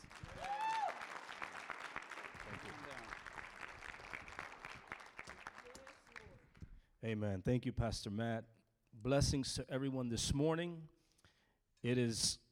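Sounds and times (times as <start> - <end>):
church congregation applauding to welcome a guest speaker: 0.0 - 6.6
speech: 7.0 - 11.0, 11.8 - 12.4.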